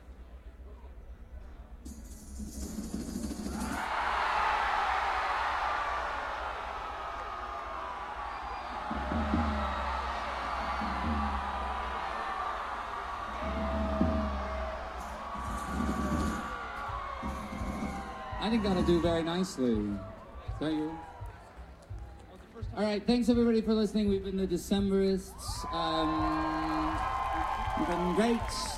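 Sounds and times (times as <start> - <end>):
audience screaming: 3.4 - 21.6, 25.4 - 28.7
speech: 18.5 - 21.1, 22.8 - 26.7, 27.8 - 28.7.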